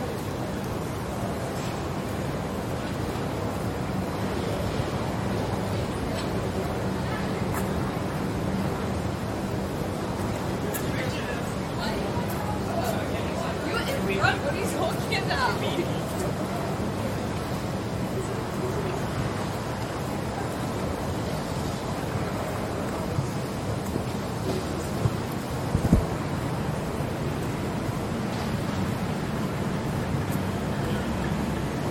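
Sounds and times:
construction noise: 0.0 - 31.9
pedestrians talking on George Street: 0.0 - 31.9
tram on George Street: 0.0 - 31.9.

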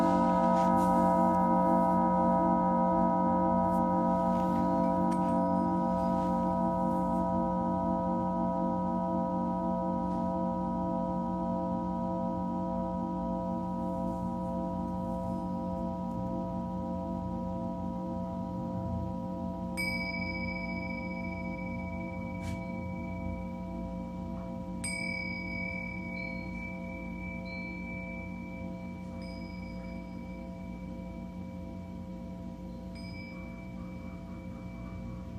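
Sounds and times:
singing bowl ringing in layered tones: 0.0 - 35.3.

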